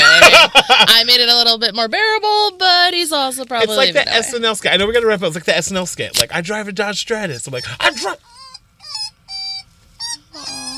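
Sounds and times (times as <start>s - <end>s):
laughter: 0.0s - 0.9s
speech: 1.1s - 8.4s
dog making high-pitched squeaky yelps: 7.5s - 10.7s.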